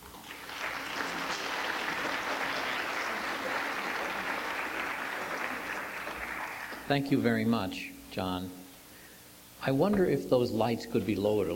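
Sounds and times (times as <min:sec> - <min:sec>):
soft audience clapping at a poetry reading: 0:00.0 - 0:07.0
speech: 0:06.9 - 0:08.6, 0:09.6 - 0:11.5.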